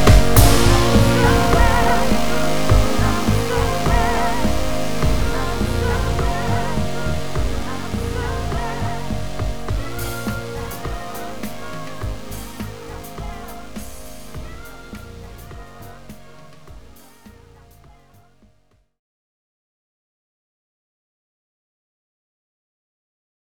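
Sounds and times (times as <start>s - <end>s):
synthwave music: 0.0s - 18.5s.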